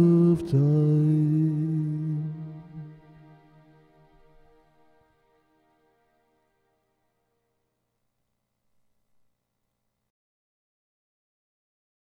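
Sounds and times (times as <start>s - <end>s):
person singing: 0.0s - 3.8s.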